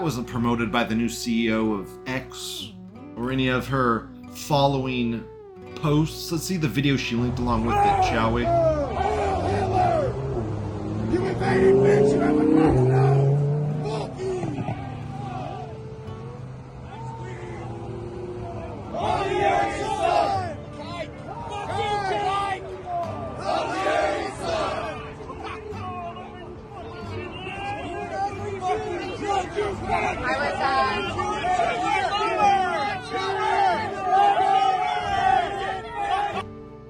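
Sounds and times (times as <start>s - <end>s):
speech: 0.0s - 9.1s, 11.5s - 12.8s
crowd yelling at a woman: 7.5s - 36.5s.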